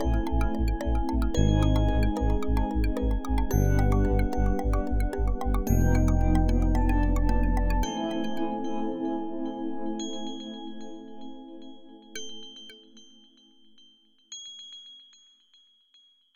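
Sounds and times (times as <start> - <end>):
spooky chill music: 0.0 - 11.7.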